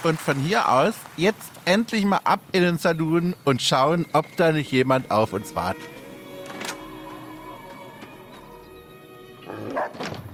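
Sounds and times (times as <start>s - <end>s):
speech: 0.0s - 5.9s
soft sustained tones: 2.8s - 9.6s
dog barking in a video game saloon: 9.5s - 10.0s.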